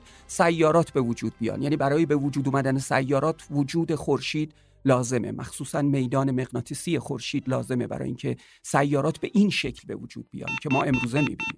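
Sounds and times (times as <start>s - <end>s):
speech: 0.3s - 11.5s
electronic warning beep signalling low fuel: 10.5s - 11.5s.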